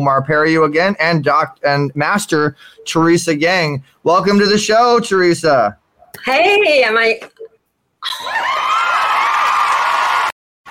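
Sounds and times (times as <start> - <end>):
speech: 0.0 - 7.4, 8.0 - 8.8
live crowd cheering and whooping: 8.0 - 10.7.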